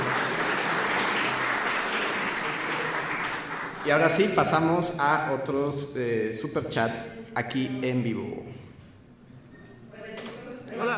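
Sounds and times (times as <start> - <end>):
applause: 0.0 - 4.7
speech: 3.8 - 8.6.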